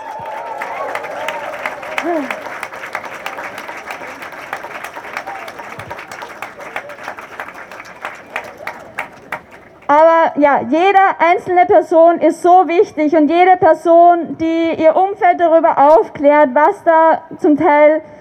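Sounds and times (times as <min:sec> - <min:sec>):
rally crowd applauding: 0:00.0 - 0:10.0
speech: 0:02.0 - 0:02.4, 0:10.4 - 0:18.1.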